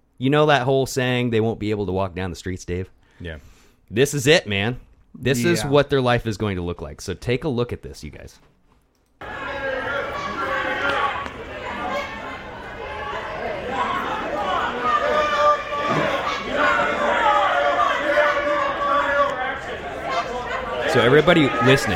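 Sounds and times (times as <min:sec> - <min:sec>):
speech: 0:00.2 - 0:08.5, 0:21.0 - 0:21.9
crowd shouting and heckling at a politician: 0:09.2 - 0:21.9.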